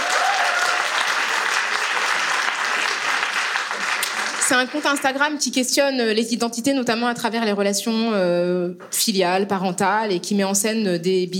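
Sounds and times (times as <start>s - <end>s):
audience applause greeting two guests at a French-language talk event: 0.0s - 5.2s
speech: 4.5s - 11.3s.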